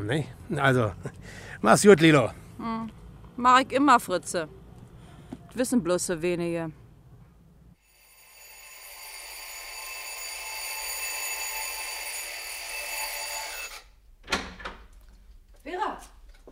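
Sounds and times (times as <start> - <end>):
speech: 0.0 - 4.6, 5.5 - 6.8
alarm clock ringing: 7.8 - 13.8.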